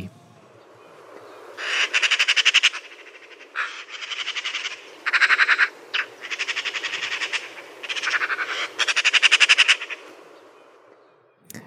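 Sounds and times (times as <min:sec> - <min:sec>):
magpie calling: 0:01.6 - 0:10.1.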